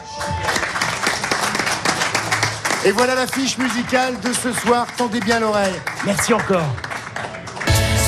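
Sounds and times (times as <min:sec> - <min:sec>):
audience applause: 0:00.0 - 0:07.9
speech: 0:02.8 - 0:06.9.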